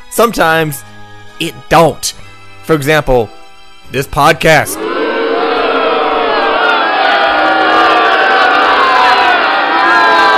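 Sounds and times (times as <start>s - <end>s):
speech: 0.2s - 4.9s
people booing: 4.7s - 10.3s.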